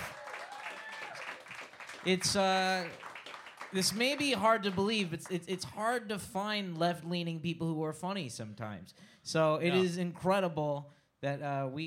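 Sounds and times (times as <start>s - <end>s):
loud whoop: 0.0s - 1.5s
audience applause: 0.0s - 5.2s
speech: 2.0s - 3.0s, 3.7s - 11.8s.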